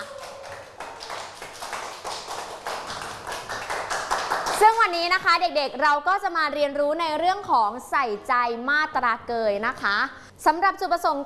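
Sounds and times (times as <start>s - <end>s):
children clapping for a classmate: 0.0s - 5.0s
speech: 4.6s - 11.2s.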